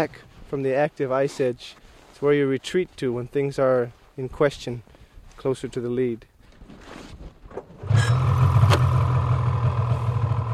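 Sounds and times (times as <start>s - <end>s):
speech: 0.0s - 8.0s
snowmobile engine: 7.8s - 10.5s.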